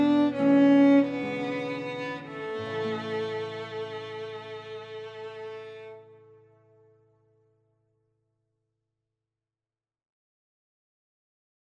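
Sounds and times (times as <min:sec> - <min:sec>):
violin in a duet with guitar: 0:00.0 - 0:07.2
classical guitar in a duet with violin: 0:00.0 - 0:07.8.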